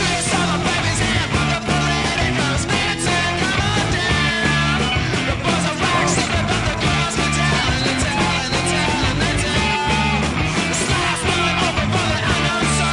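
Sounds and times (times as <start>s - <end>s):
distorted bass guitar music: 0.0s - 12.9s.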